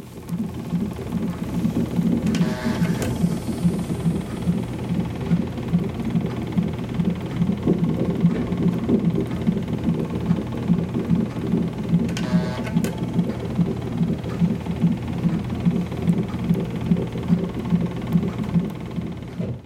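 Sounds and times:
hospital labor room monitors and compression devices whirring and humming: 0:00.0 - 0:19.6
hospital labor room printer bursts: 0:00.5 - 0:19.4.

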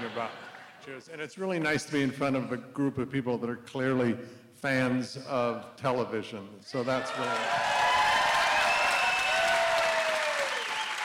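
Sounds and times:
speech: 0:00.1 - 0:07.8
audience applause: 0:06.8 - 0:11.0
faint whistles and cheers: 0:07.0 - 0:11.0.

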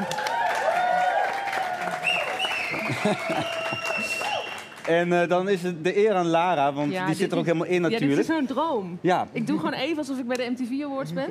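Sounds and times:
crowd clapping: 0:00.0 - 0:05.7
laughter: 0:02.7 - 0:04.2
speech: 0:02.9 - 0:04.2, 0:04.8 - 0:11.2.

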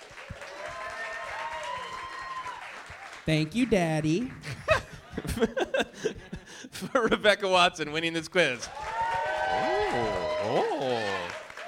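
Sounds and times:
audience applause: 0:00.0 - 0:05.2, 0:08.6 - 0:11.6
speech: 0:03.2 - 0:04.6, 0:05.3 - 0:05.7, 0:06.8 - 0:08.8
laughter: 0:04.4 - 0:07.4.

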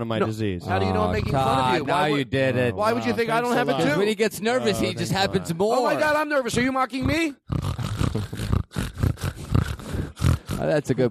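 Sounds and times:
speech: 0:00.0 - 0:08.4, 0:10.6 - 0:11.0
person imitating pig snorting: 0:07.0 - 0:10.8.

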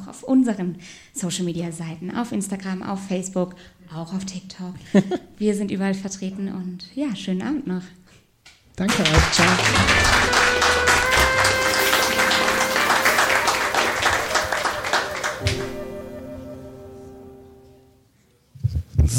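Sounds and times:
speech: 0:00.1 - 0:08.0, 0:08.8 - 0:10.9
audience applause: 0:08.9 - 0:16.9
laughter: 0:09.1 - 0:15.7
sustained tone: 0:09.2 - 0:18.0.

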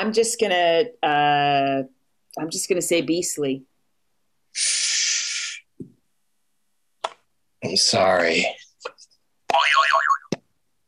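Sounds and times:
speech: 0:00.0 - 0:03.7, 0:04.5 - 0:04.8, 0:07.6 - 0:08.6
cartoonish boing sound effect: 0:09.5 - 0:10.4.

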